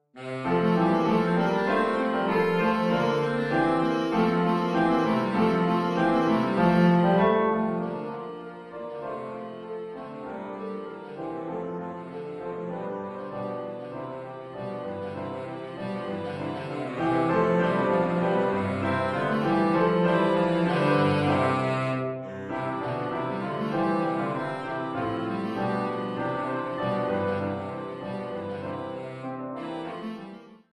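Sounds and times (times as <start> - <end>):
cello sonata allegro: 0.0 - 30.7.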